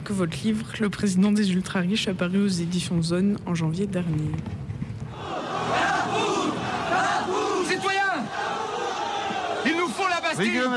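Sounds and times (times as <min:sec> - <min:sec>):
speech: 0:00.1 - 0:04.6, 0:10.4 - 0:10.7
crowd roaring and shouting at the storming of the Bastille: 0:05.1 - 0:10.7.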